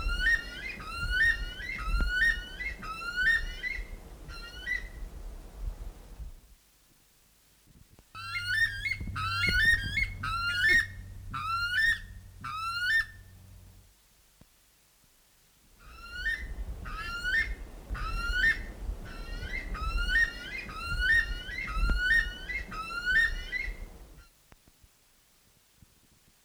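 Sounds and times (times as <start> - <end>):
buff weka song: 0.0 - 5.0, 8.2 - 13.4, 15.8 - 24.0.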